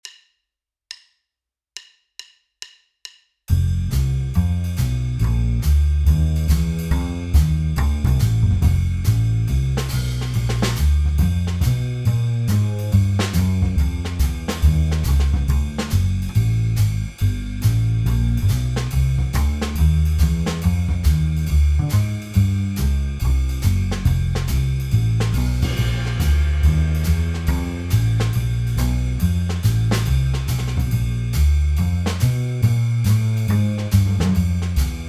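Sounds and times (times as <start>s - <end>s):
blues in F: 3.9s - 35.0s.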